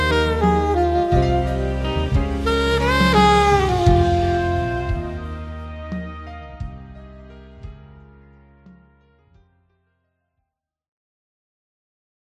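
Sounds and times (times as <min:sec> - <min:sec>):
saxophone: 0:00.0 - 0:08.9.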